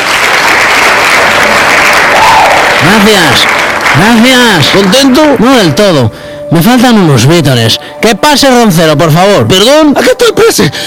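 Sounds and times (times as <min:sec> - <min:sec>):
canned applause sound effect: 0:00.0 - 0:05.8
speech: 0:02.9 - 0:10.8.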